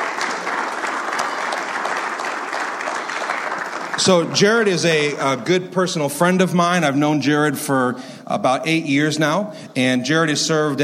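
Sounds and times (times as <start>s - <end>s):
church audience applause welcoming a guest speaker to the stage: 0.0s - 5.1s
speech: 4.0s - 10.8s.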